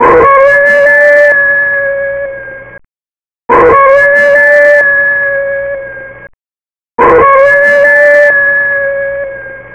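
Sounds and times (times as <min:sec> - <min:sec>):
wolf: 0:00.0 - 0:02.4, 0:03.5 - 0:06.0, 0:07.0 - 0:09.6.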